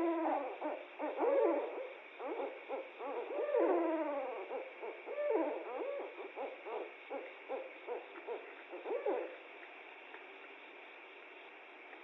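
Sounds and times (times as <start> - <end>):
Barred Owl calling: 0.0 - 9.4.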